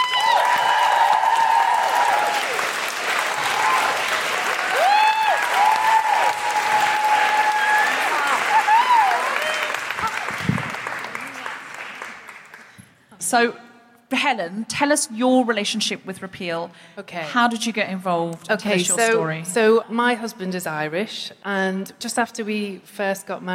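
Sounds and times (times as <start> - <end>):
audience applause welcoming a guest onto the stage: 0.0 - 12.8
speech: 13.3 - 23.5.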